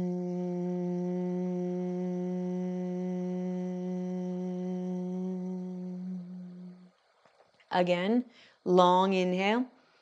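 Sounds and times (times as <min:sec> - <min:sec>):
person humming a low ng tone imitating a bumblebee: 0:00.0 - 0:06.9
speech: 0:07.7 - 0:09.8.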